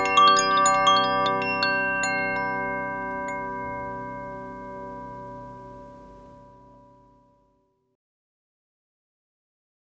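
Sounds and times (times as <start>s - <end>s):
Koshi Ignis wind chime: 0.0s - 7.8s.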